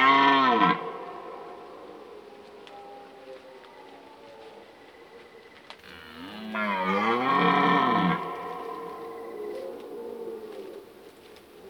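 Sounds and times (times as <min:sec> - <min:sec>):
red deer roaring: 0:05.8 - 0:09.6.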